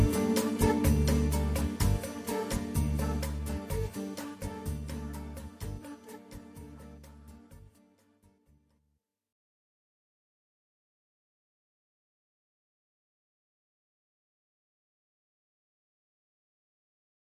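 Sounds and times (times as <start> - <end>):
bossa nova music: 0.0 - 7.9.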